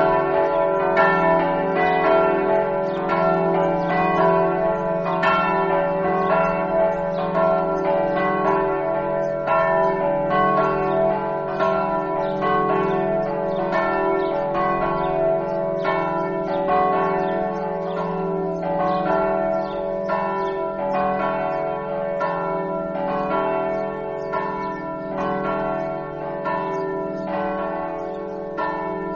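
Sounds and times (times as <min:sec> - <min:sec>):
bells: 0:00.0 - 0:29.1.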